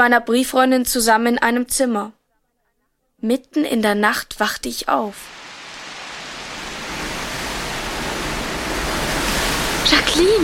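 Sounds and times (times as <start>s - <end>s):
speech: 0.0s - 2.2s, 3.2s - 5.4s, 9.9s - 10.4s
storm wind: 5.1s - 10.4s.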